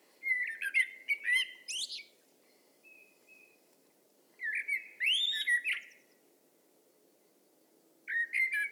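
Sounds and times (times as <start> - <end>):
Turdus merula common blackbird singing: 0.2 - 2.2, 4.4 - 6.2, 8.1 - 8.7.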